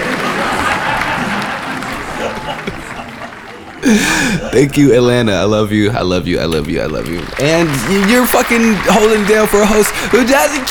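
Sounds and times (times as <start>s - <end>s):
large crowd applauding: 0.0s - 4.8s, 6.6s - 10.6s
laughter: 0.0s - 5.0s
speech: 3.8s - 10.6s.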